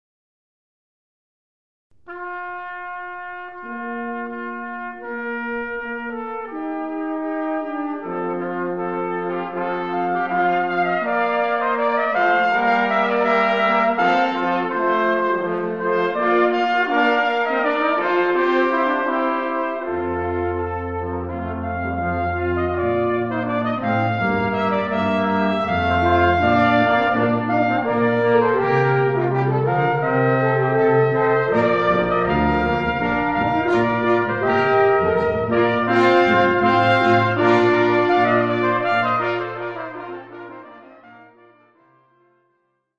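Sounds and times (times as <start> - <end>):
brass quintet playing a suite: 2.0 - 41.8.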